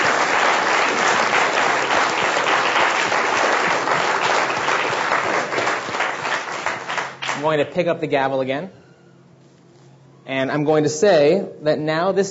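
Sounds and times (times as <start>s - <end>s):
audience applause: 0.0s - 7.5s
speech: 7.4s - 8.8s, 10.3s - 12.2s.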